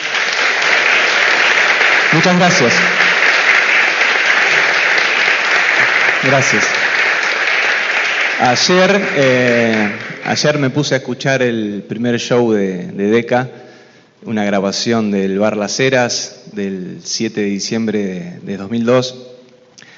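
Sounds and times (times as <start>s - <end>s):
audience applause: 0.0s - 10.8s
speech: 2.2s - 3.1s, 6.2s - 6.8s, 8.4s - 13.6s, 14.2s - 19.2s.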